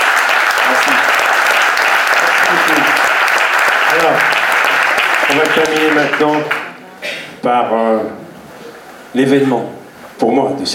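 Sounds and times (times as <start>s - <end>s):
audience applause: 0.0s - 6.8s
speech: 5.3s - 6.6s, 7.4s - 8.2s, 9.1s - 10.7s.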